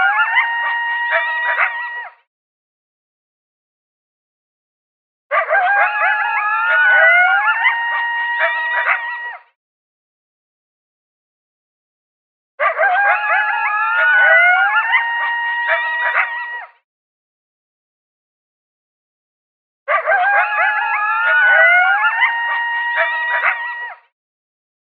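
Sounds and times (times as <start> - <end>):
coyotes howling and yipping: 0.0 - 2.2, 5.3 - 9.5, 12.6 - 16.8, 19.9 - 24.0.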